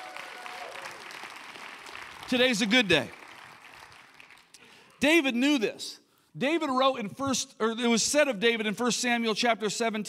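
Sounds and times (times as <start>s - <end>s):
audience applause for Jesus: 0.0s - 5.0s
speech: 2.3s - 3.2s, 5.0s - 10.0s.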